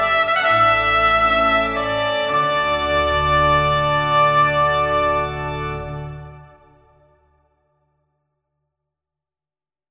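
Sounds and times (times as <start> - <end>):
trumpet: 0.0 - 7.2.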